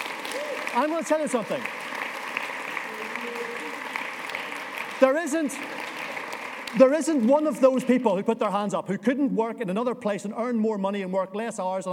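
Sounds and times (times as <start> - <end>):
church audience applause: 0.0 - 7.9
speech: 0.8 - 1.8, 5.0 - 5.9, 6.7 - 11.9.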